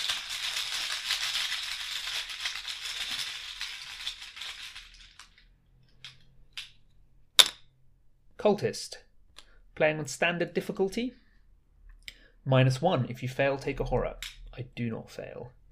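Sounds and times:
game tokens rattling in a chaos bag: 0.0 - 5.4
speech: 8.4 - 9.0, 9.8 - 11.2, 12.4 - 15.6.

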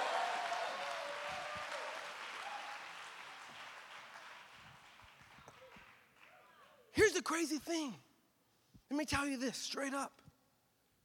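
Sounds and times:
audience clapping hands: 0.0 - 6.8
speech: 7.2 - 8.1, 8.9 - 10.2.

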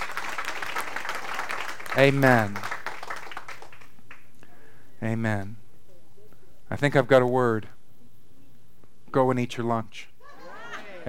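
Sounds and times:
audience clapping: 0.0 - 4.4
speech: 2.0 - 2.7, 5.0 - 5.6, 6.7 - 7.7, 9.1 - 10.1.

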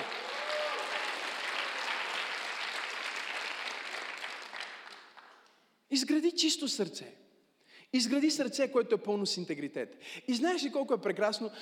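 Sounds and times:
audience applause: 0.0 - 5.4
speech: 5.9 - 7.2, 7.9 - 11.6.

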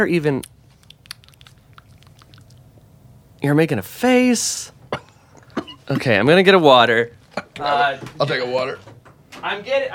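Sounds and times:
speech: 0.0 - 0.5, 3.4 - 4.8, 5.9 - 9.9
biting and chewing food: 0.7 - 2.9.

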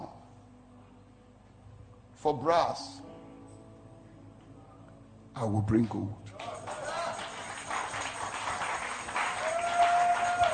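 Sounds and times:
speech: 2.2 - 3.1, 5.4 - 6.5
church audience clapping during an evening sermon: 5.8 - 10.5.

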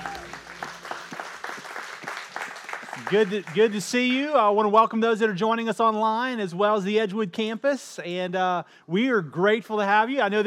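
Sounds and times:
congregation applauding in church: 0.0 - 4.4
speech: 3.0 - 10.4.

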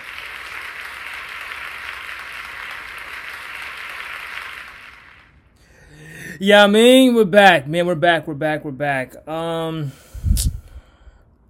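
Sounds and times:
round of applause: 0.0 - 5.6
speech: 6.4 - 10.0.

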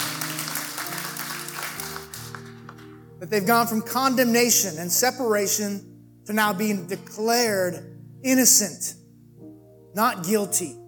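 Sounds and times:
church congregation clapping at a Resurrection Sunday service: 0.0 - 3.0
speech: 3.2 - 9.0, 10.0 - 10.8.

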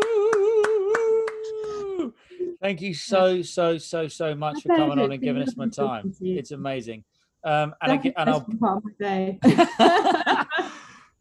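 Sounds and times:
applause: 0.0 - 1.7
speech: 2.6 - 10.4
laughter: 4.5 - 6.9, 7.7 - 8.5, 9.4 - 10.9.

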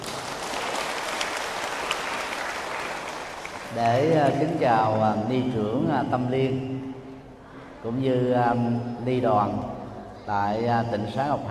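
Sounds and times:
audience applause at the Ngoc Hai nuns' temple in Long Hai, Ba Ria–Vung Tau: 0.0 - 4.4
speech: 3.7 - 6.7, 7.8 - 11.4.

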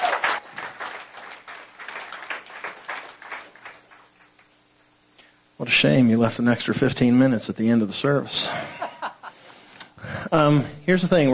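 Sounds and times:
church congregation applauding during a Sunday morning service: 0.0 - 4.6
speech: 5.6 - 8.8, 10.3 - 11.3
laughter: 8.5 - 9.5.

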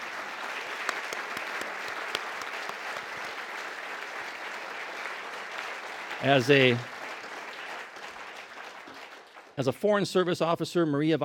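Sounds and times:
audience applause: 0.0 - 9.6
speech: 6.2 - 6.9, 9.6 - 11.2.

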